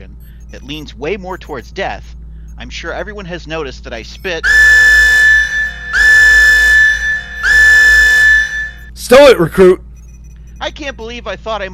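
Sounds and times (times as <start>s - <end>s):
speech: 0.5s - 4.7s, 9.1s - 9.8s, 10.6s - 11.7s
proximity alarm: 4.2s - 8.9s.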